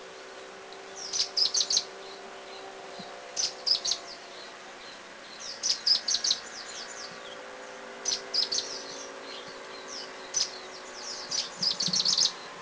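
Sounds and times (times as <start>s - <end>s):
Grey-breasted Prinia calling in Thailand: 0.0s - 12.6s.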